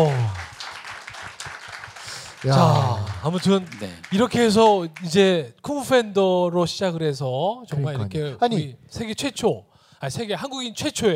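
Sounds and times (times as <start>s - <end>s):
small group clapping: 0.0s - 5.4s
speech: 2.4s - 11.1s.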